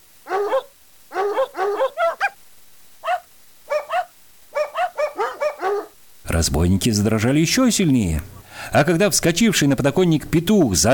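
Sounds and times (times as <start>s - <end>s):
tonal dog-like barks: 0.2s - 2.4s, 3.0s - 6.0s
speech: 6.4s - 10.9s.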